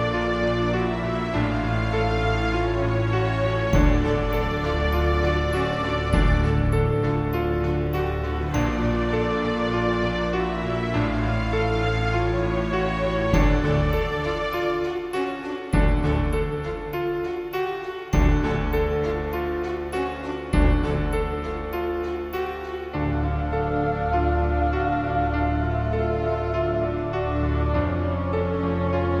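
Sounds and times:
haunting piano ambience: 0.0 - 29.1.

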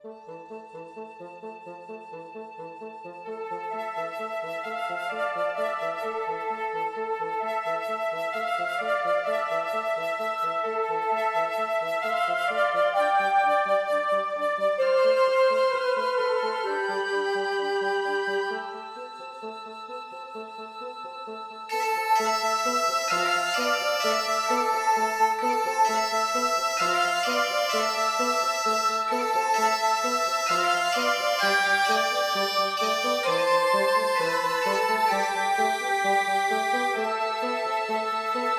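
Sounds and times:
rushing woodwind music: 0.0 - 38.5.

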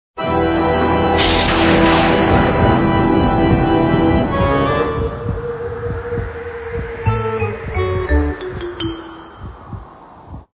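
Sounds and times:
game menu music: 0.3 - 5.3, 7.0 - 9.7.

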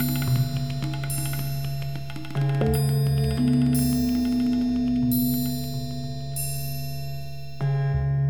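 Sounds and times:
tambura drone: 0.0 - 6.4
gamelan: 0.0 - 7.9
tabla: 0.0 - 8.1.

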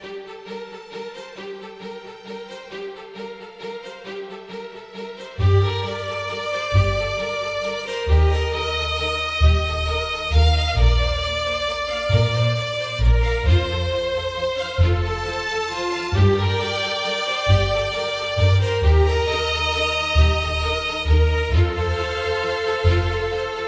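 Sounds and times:
bowed music: 0.0 - 23.6.

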